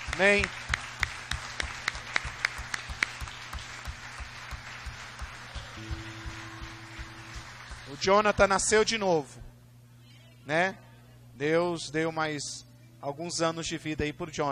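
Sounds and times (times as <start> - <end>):
church audience clapping in unison: 0.0 - 9.0
low instrumental drone: 0.0 - 9.7
speech: 0.2 - 0.7, 8.0 - 9.4, 10.4 - 10.8, 11.4 - 14.5.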